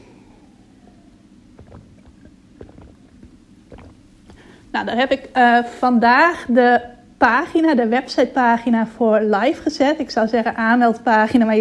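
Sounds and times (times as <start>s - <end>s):
low steady rumble: 0.0s - 11.5s
person drinking water: 1.6s - 4.5s
speech: 4.8s - 11.5s.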